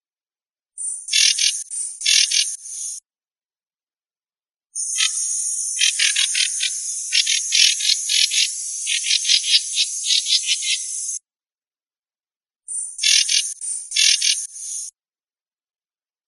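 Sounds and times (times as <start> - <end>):
Bornean striped babbler alarm call in Kalimantan: 1.1 - 3.0, 4.8 - 11.2, 13.0 - 14.9.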